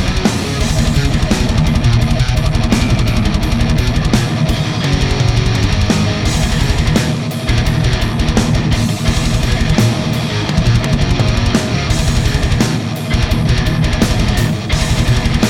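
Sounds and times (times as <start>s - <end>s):
electric guitar through a tube amplifier at low volume: 0.0s - 15.4s.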